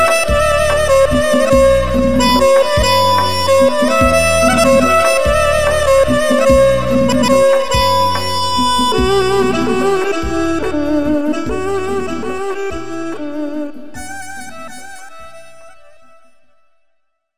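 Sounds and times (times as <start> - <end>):
violin playing: 0.0 - 16.1.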